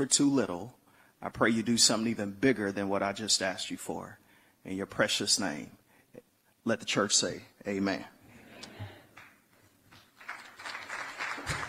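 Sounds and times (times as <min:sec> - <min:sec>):
speech: 0:00.0 - 0:08.2
audience clapping after a sermon: 0:08.9 - 0:11.6.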